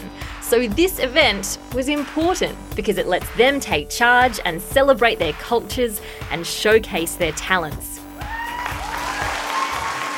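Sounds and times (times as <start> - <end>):
speech: 0.5 - 7.9
audience cheering: 8.2 - 10.1.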